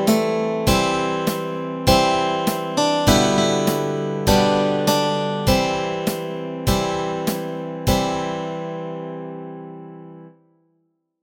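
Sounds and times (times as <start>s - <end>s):
guitar and ukulele playing melody and chords: 0.0s - 8.5s.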